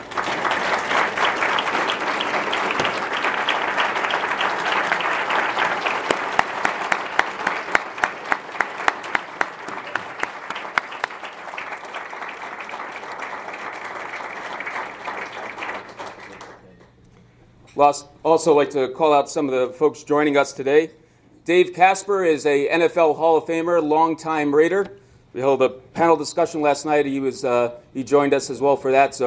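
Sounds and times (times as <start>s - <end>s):
applause: 0.0s - 17.0s
speech: 17.8s - 29.2s.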